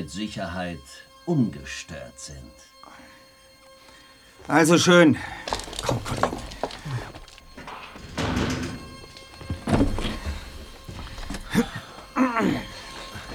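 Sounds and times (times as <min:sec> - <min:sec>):
speech: 0:00.0 - 0:02.7, 0:04.5 - 0:06.5
door closing: 0:05.4 - 0:13.3.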